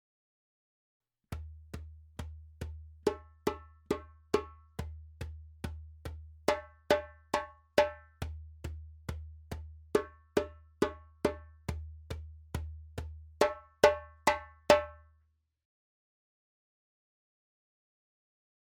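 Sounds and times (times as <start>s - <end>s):
djembe drumming: 1.4s - 15.0s.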